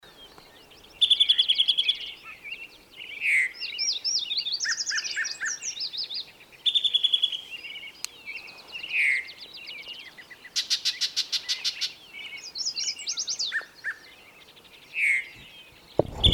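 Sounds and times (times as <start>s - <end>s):
birdsong: 0.0s - 16.3s.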